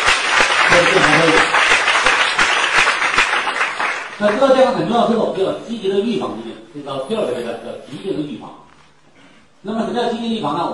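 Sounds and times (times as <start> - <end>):
crowd applauding: 0.0 - 4.6
speech: 4.2 - 8.6, 9.6 - 10.7.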